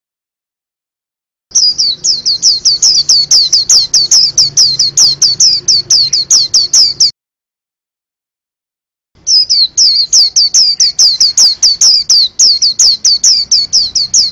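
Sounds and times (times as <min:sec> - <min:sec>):
white-eye singing: 0:01.5 - 0:07.1, 0:09.2 - 0:14.2.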